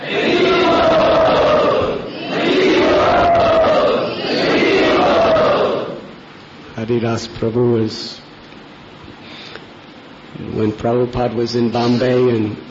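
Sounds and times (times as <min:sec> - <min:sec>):
crowd chanting at a devotional gathering: 0:00.0 - 0:06.2
speech: 0:06.9 - 0:08.2, 0:10.5 - 0:12.6.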